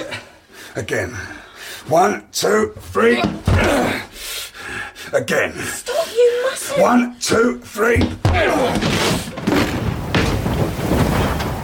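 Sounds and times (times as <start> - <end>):
speech: 0.8 - 4.1, 5.1 - 5.9, 6.5 - 8.9
open window banging in a gust: 8.0 - 11.6.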